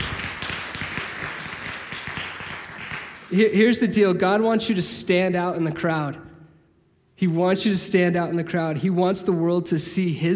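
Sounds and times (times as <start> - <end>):
crowd applauding: 0.0 - 3.4
speech: 3.3 - 6.3, 7.2 - 10.3.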